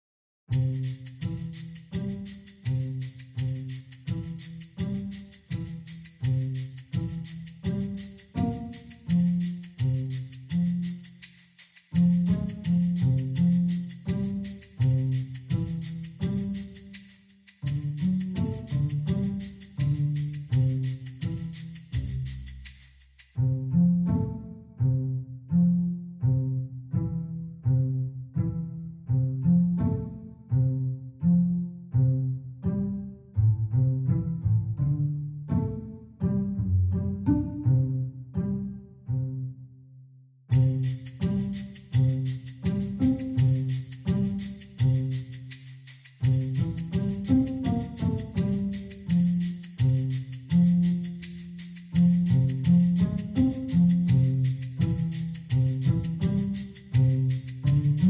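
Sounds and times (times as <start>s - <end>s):
percussion: 0.5s - 24.3s, 40.5s - 58.0s
bass: 0.5s - 58.0s.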